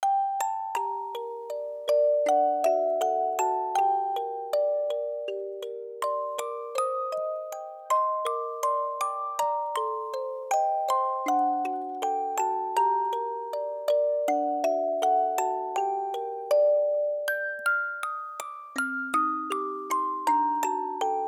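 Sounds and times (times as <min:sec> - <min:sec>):
music box: 0:00.0 - 0:21.2.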